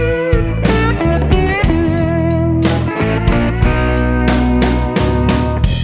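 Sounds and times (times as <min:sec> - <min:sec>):
slide guitar: 0:00.0 - 0:05.7.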